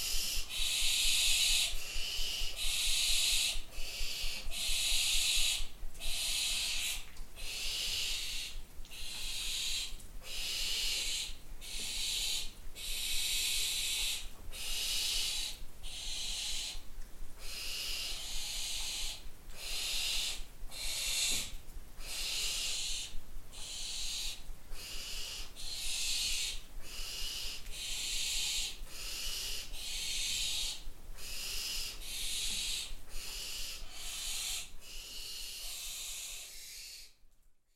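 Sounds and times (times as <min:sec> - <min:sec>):
young barn owls in the nest: 0:00.0 - 0:37.2.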